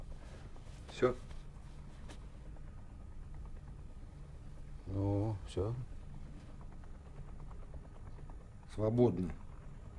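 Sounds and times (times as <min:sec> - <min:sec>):
repaired helicopter engine running: 0:00.0 - 0:09.9
speech: 0:01.0 - 0:01.3, 0:04.9 - 0:05.9, 0:08.8 - 0:09.4.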